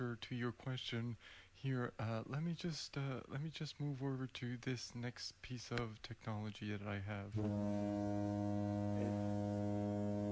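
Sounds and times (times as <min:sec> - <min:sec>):
speech: 0:00.0 - 0:10.2
foghorn: 0:07.4 - 0:10.2.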